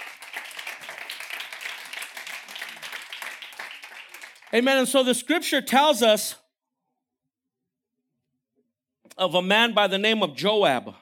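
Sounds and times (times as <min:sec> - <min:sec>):
audience clapping: 0:00.0 - 0:05.0
speech: 0:04.5 - 0:06.4, 0:09.2 - 0:11.0.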